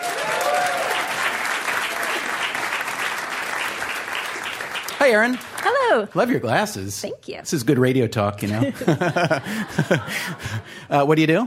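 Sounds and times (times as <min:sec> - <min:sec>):
audience clapping: 0:00.0 - 0:06.7
speech: 0:05.0 - 0:11.4
laughter: 0:08.4 - 0:10.8.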